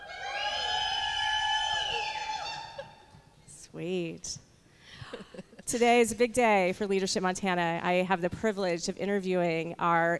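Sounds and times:
live audience cheering: 0.0 - 3.3
speech: 3.8 - 4.5, 5.1 - 10.1.

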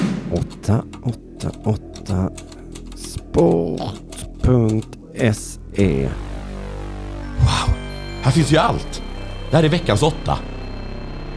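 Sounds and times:
speech: 0.3 - 2.5, 3.4 - 6.3, 7.4 - 10.5
trembling fingers typing on a polished keyboard: 0.3 - 5.9.

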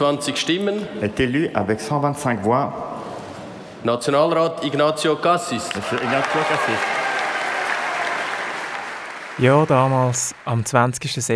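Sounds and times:
speech: 0.0 - 3.0, 3.8 - 7.0, 9.4 - 11.3
applause in the Nationalrat for newly elected Bundesrat: 5.5 - 11.3.

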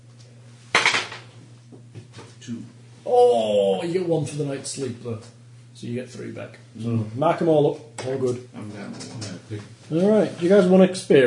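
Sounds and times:
low steady hum: 0.0 - 11.2
die rolled across a hard tabletop: 0.7 - 1.3
speech: 2.4 - 11.2.

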